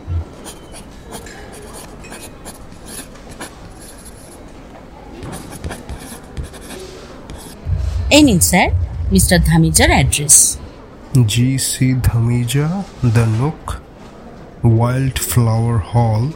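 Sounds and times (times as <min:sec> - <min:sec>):
pen scratching on paper writing an address at a hotel desk: 0:00.3 - 0:04.4, 0:05.2 - 0:07.6
low thumps: 0:07.6 - 0:10.8
speech: 0:08.1 - 0:13.8, 0:14.6 - 0:16.3.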